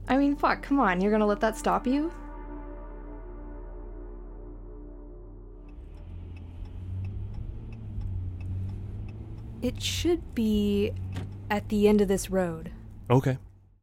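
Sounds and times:
car engine driving down a street lined with orchards on the outskirts of Emmett: 0:00.0 - 0:13.8
speech: 0:00.1 - 0:02.2, 0:09.6 - 0:13.5
soft regular ticking: 0:05.6 - 0:12.2.

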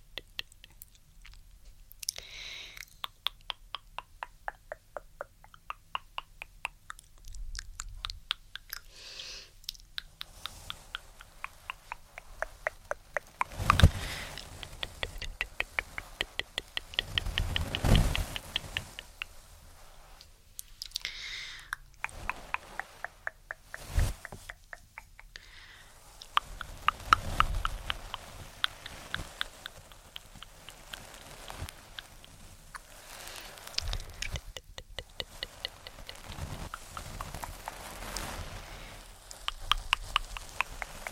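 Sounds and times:
tongue clicking: 0:00.0 - 0:09.0, 0:09.6 - 0:19.3, 0:20.6 - 0:31.0, 0:33.8 - 0:37.4, 0:39.4 - 0:41.1
soft scratchy brushing strokes: 0:10.0 - 0:20.8, 0:21.9 - 0:41.1.

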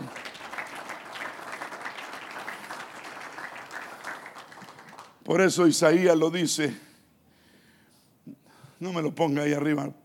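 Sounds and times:
audience applause: 0:00.0 - 0:05.2
speech: 0:05.3 - 0:06.9, 0:08.8 - 0:10.0.

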